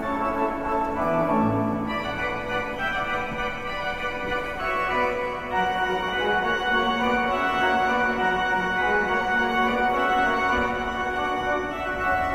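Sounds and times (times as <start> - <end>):
solo organ pastorale: 0.0 - 12.3.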